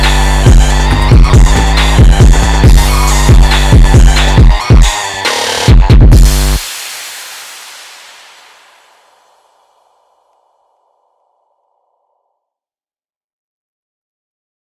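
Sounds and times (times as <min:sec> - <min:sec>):
Arabic bass line: 0:00.0 - 0:06.6.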